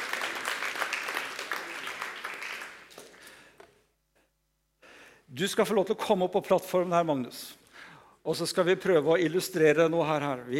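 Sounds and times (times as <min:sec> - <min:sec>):
audience applause: 0:00.0 - 0:03.3
speech: 0:05.4 - 0:07.6, 0:08.2 - 0:10.5.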